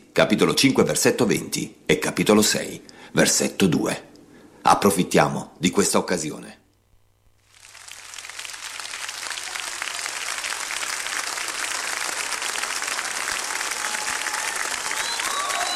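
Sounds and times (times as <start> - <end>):
speech: 0.2 - 6.6
audience applause: 7.5 - 15.7
faint whistles or cries: 13.8 - 15.7.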